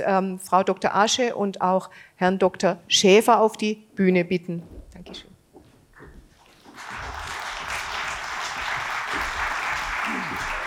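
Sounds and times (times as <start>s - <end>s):
speech: 0.0s - 5.3s
audience applause: 6.5s - 10.6s.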